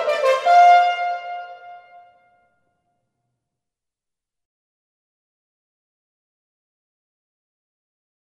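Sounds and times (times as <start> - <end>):
horn call: 0.0 - 2.5.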